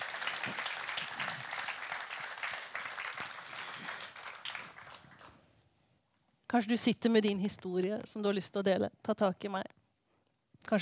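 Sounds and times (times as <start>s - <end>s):
audience applauding: 0.0s - 5.4s
speech: 6.5s - 9.8s.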